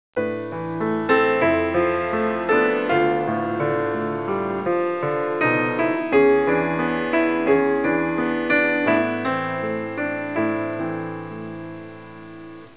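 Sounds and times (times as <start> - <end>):
classical music ringtones: 0.2 - 12.7.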